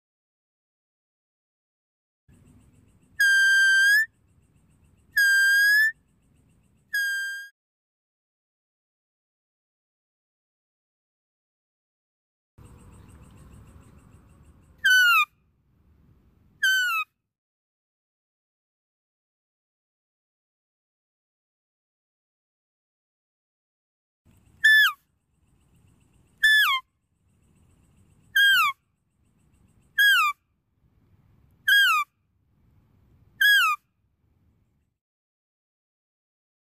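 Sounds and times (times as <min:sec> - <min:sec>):
deer calls: 0:03.2 - 0:04.1, 0:05.2 - 0:05.9, 0:06.9 - 0:07.5, 0:14.8 - 0:15.3, 0:24.6 - 0:25.0, 0:26.4 - 0:26.8, 0:28.4 - 0:28.8, 0:30.0 - 0:30.4, 0:31.7 - 0:32.1, 0:33.4 - 0:33.8.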